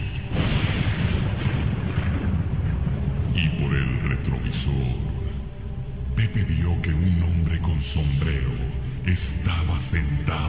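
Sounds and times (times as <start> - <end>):
thunder after a lightning flash: 0.0 - 5.3
speech: 6.2 - 10.4.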